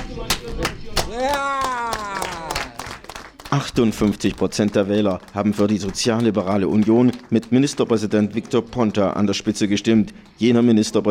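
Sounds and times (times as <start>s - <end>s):
scattered sharp hand claps: 0.0s - 10.5s
crowd cheering at party headquarters: 0.5s - 8.7s
person whooping: 1.1s - 2.9s
speech: 3.5s - 11.0s.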